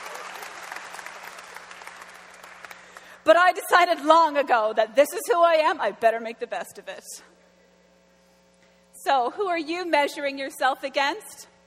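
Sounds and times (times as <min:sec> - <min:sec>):
audience clapping: 0:00.0 - 0:03.2
speech: 0:03.3 - 0:07.4, 0:09.0 - 0:11.5.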